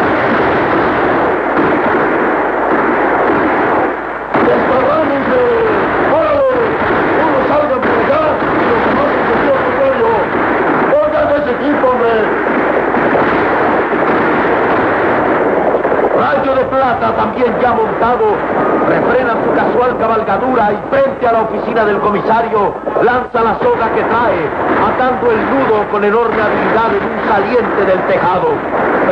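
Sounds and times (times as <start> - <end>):
gunfire from outlaws shooting from horseback: 0.0 - 29.0
speech: 17.4 - 29.0.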